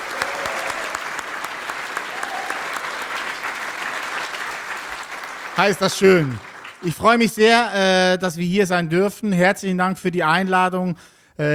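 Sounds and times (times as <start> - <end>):
audience applause: 0.0 - 7.3
speech: 5.6 - 11.5.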